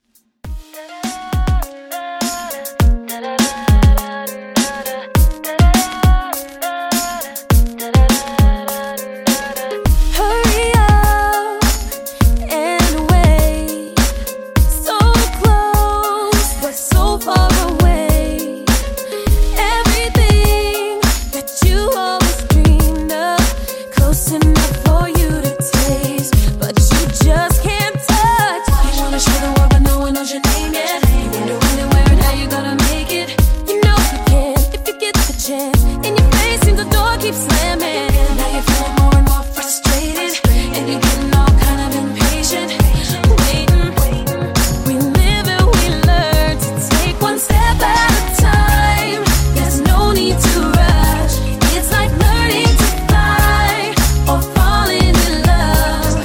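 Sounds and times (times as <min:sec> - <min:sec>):
pop beat at 112: 0:00.5 - 0:56.2.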